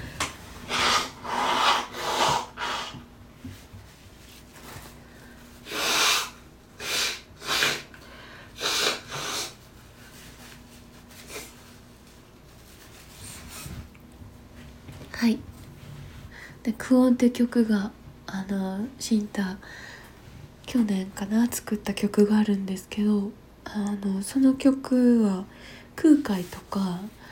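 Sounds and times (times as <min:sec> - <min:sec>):
person blowing nose: 0:00.7 - 0:03.0, 0:05.6 - 0:09.7, 0:11.2 - 0:11.6
sniffs: 0:00.7 - 0:03.0, 0:05.6 - 0:09.6
speech: 0:15.2 - 0:15.5, 0:16.6 - 0:19.9, 0:20.7 - 0:27.2.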